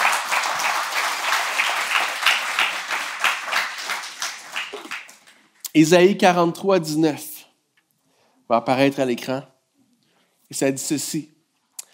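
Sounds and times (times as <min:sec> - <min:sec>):
audience applauding: 0:00.0 - 0:05.6
speech: 0:05.8 - 0:07.3, 0:08.5 - 0:09.5, 0:10.5 - 0:11.4.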